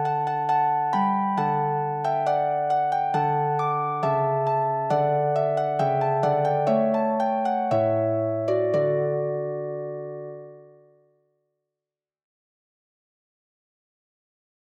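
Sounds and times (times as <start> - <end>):
harp: 0.0 - 10.9.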